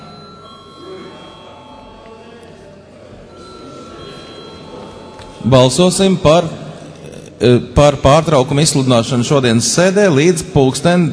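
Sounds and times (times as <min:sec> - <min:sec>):
parliament session bell ringing before vote: 0:00.0 - 0:07.0
speech: 0:05.4 - 0:06.6, 0:07.4 - 0:11.1.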